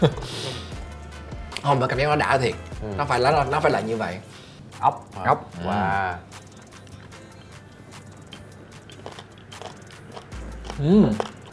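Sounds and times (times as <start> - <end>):
speech: 0.0 - 0.4, 1.6 - 6.3, 10.8 - 11.3
laughter: 0.0 - 0.7
crunchy food being bitten and chewed: 8.3 - 11.5.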